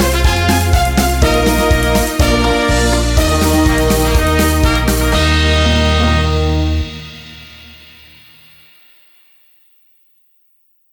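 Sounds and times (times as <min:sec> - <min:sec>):
karaoke singing: 0:00.0 - 0:07.1.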